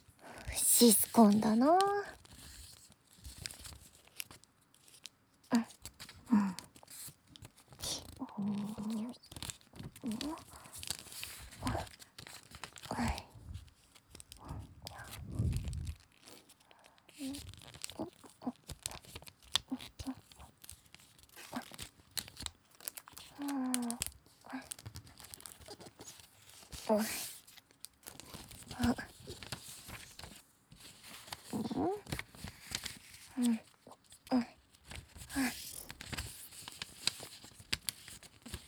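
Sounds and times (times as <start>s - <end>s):
paper being folded for origami: 0.6s - 5.0s, 6.8s - 24.0s, 24.6s - 38.6s
speech: 0.8s - 2.2s.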